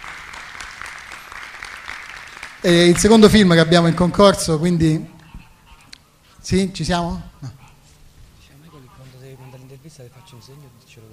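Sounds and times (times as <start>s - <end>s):
faint audience clapping for a competition film: 0.0s - 4.1s
speech: 2.6s - 5.2s, 6.4s - 7.6s, 10.3s - 11.1s.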